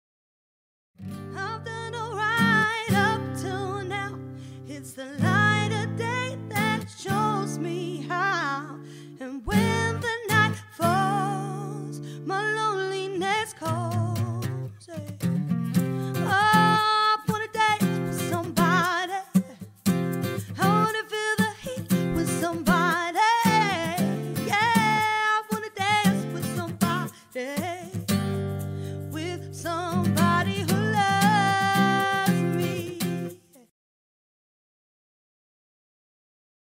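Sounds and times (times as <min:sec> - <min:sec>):
acoustic duo playing a cover: 0:01.1 - 0:12.2, 0:13.2 - 0:33.6.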